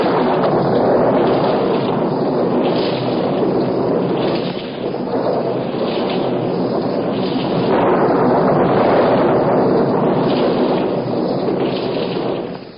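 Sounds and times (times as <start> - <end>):
deep rumbling thunder: 0.0 - 12.7
storm wind rushing: 0.0 - 12.7.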